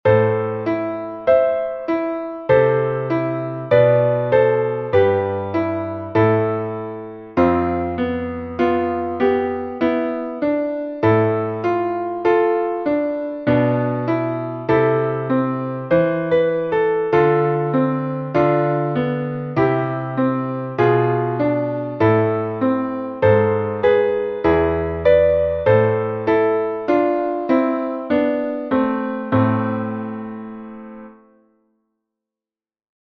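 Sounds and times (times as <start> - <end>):
piano: 0.0 - 32.0.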